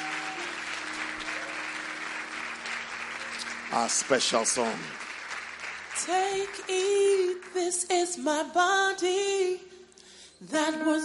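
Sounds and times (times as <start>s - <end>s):
audience applause: 0.0s - 7.6s
speech: 3.7s - 5.0s, 6.0s - 9.7s, 10.4s - 11.0s.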